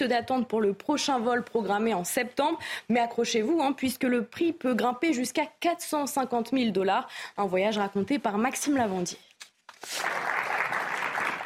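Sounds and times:
speech: 0.0 - 10.4
crowd applauding arriving space tourists: 9.9 - 11.4.

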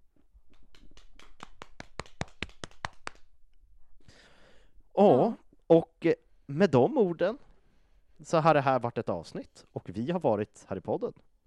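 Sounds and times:
small round of applause: 0.5 - 3.3
speech: 5.0 - 7.5, 8.2 - 11.3.

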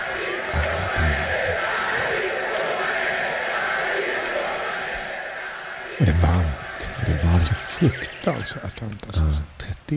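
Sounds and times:
boxing crowd chanting a fighter's name: 0.0 - 7.6
speech: 7.8 - 9.9.

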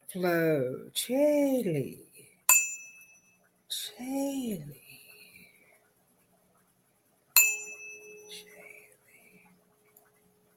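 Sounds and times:
speech: 0.1 - 2.1, 3.7 - 4.8
bell ding: 2.5 - 3.4, 7.4 - 8.5.

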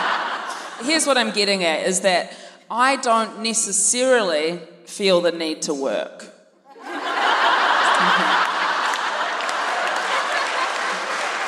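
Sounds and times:
laughter: 0.0 - 1.0, 6.7 - 11.4
speech: 0.8 - 6.3
audience applause: 7.2 - 11.4.

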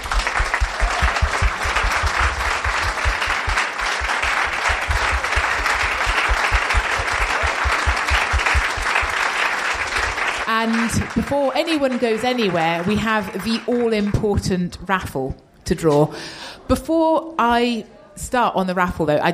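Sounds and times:
audience round of applause: 0.0 - 13.7
speech: 10.9 - 19.3.

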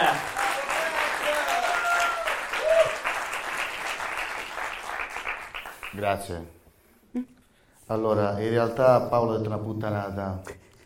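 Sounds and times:
audience applause: 0.0 - 6.1
speech: 6.0 - 10.6.

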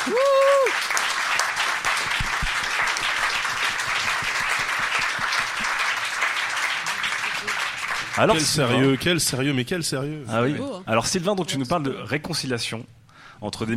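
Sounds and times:
speech: 0.0 - 0.9, 8.2 - 13.7
voiced cheer: 0.0 - 0.9
audience applause: 0.0 - 9.1.

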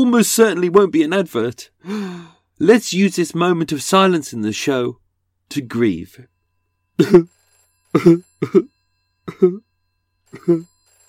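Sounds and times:
speech: 0.0 - 6.3, 7.0 - 8.7, 9.3 - 9.7, 10.3 - 10.7
1980s-style landline telephone ringing sound effect: 5.5 - 11.0.

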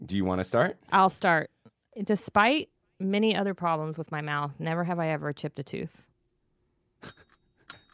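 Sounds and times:
speech: 0.1 - 6.1
small bells ringing: 7.0 - 7.9.

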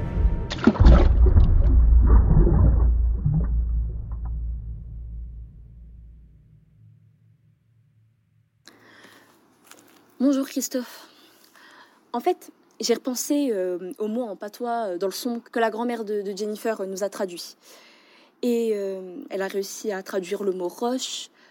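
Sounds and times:
person plunging into water: 0.5 - 5.4
speech: 10.3 - 11.1, 12.2 - 21.4.

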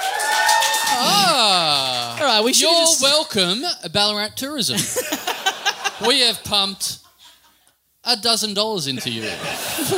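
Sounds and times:
audience applause: 0.0 - 2.5
speech: 2.4 - 5.4, 6.0 - 7.0, 8.0 - 9.9
laughter: 4.8 - 6.4, 9.0 - 9.9.

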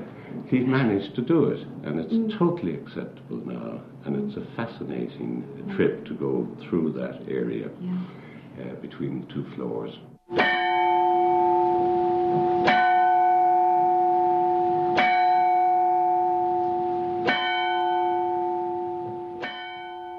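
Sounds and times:
speech: 0.5 - 10.6
turret clock bell striking in steeple: 10.4 - 20.1.

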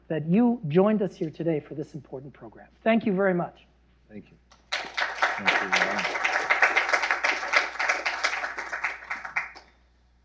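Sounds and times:
speech: 0.1 - 4.4, 5.4 - 6.3
audience applause: 4.7 - 9.7.

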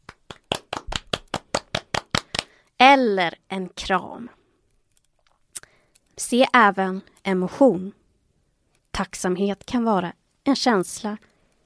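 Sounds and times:
hand claps: 0.0 - 2.6
speech: 3.0 - 4.4, 6.2 - 8.0, 9.0 - 11.3.

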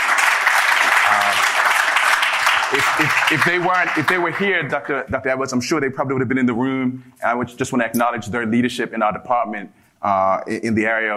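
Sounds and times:
audience applause honoring a women's basketball team: 0.0 - 4.8
speech: 2.7 - 11.1.

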